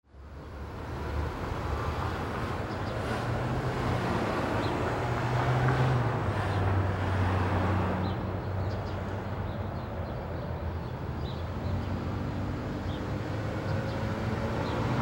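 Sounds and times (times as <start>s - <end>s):
traffic: 0.1s - 15.0s.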